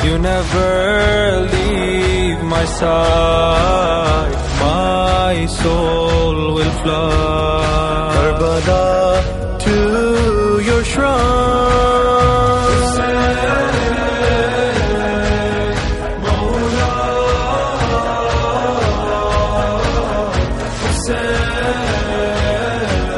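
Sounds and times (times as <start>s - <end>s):
latmiyya nohay lament in English and Urdu: 0.0s - 23.1s.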